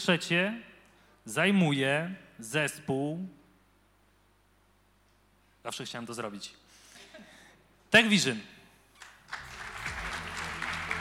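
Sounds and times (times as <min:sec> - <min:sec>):
speech: 0:00.0 - 0:03.4, 0:05.6 - 0:06.6, 0:07.9 - 0:08.5
audience applause: 0:09.0 - 0:10.9.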